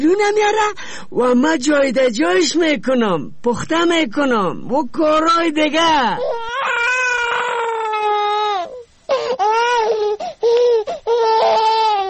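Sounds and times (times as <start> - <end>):
speech: 0.0 - 6.4
baby crying: 6.1 - 12.0.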